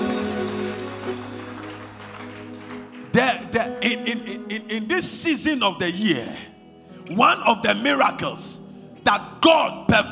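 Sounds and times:
audience clapping: 0:00.0 - 0:03.8
speech: 0:03.2 - 0:06.5, 0:07.1 - 0:10.1.

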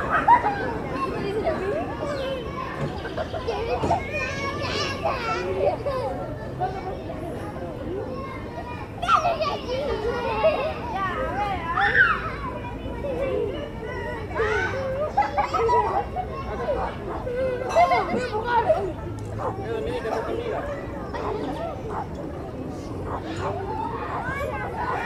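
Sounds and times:
children laughing and chattering in the street: 0:00.0 - 0:25.0.

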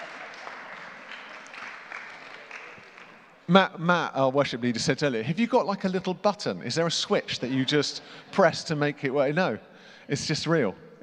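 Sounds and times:
audience applause: 0:00.0 - 0:03.4
speech: 0:03.5 - 0:11.0.

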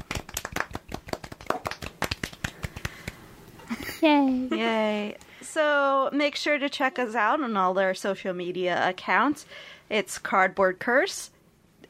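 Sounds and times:
small group clapping: 0:00.0 - 0:03.2
speech: 0:04.0 - 0:11.4.

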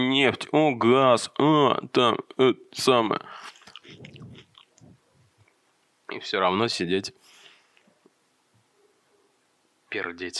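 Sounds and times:
speech: 0:00.0 - 0:04.1, 0:06.1 - 0:07.2, 0:09.9 - 0:10.3
biting and chewing watermelon: 0:03.5 - 0:05.0.

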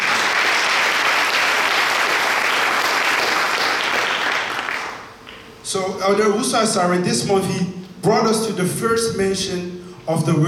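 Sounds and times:
audience clapping: 0:00.0 - 0:05.5
speech: 0:05.7 - 0:10.4.

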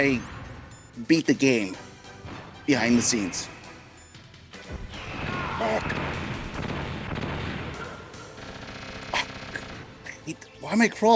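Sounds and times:
speech: 0:00.0 - 0:00.3, 0:01.0 - 0:03.6, 0:10.3 - 0:11.1
missiles exploding in a Metal Gear Solid video game: 0:04.8 - 0:07.9.

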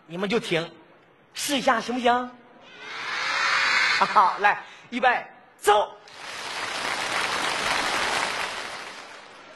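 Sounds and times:
speech: 0:00.1 - 0:00.8, 0:01.4 - 0:03.0, 0:04.0 - 0:06.2
crowd applause: 0:06.1 - 0:09.5.

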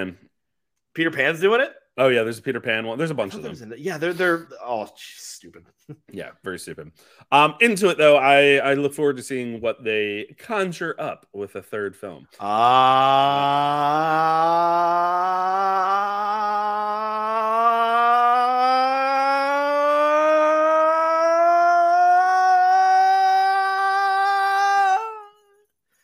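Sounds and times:
speech: 0:00.0 - 0:00.2, 0:01.0 - 0:16.4
voice imitating a cinema logo sound: 0:12.4 - 0:25.6.

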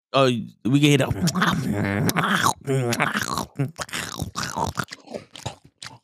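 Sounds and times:
speech: 0:00.1 - 0:04.9
mumbled voiced sounds: 0:01.0 - 0:05.7
crunchy wet chewing near the microphone: 0:01.2 - 0:06.0.

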